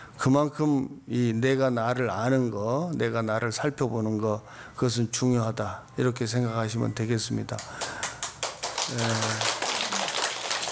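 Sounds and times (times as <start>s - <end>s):
speech: 0.2s - 8.0s, 8.9s - 9.6s
audience clapping: 7.6s - 10.7s.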